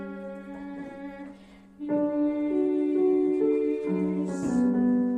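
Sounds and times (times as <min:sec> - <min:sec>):
alto choir voices singing: 0:01.8 - 0:05.0.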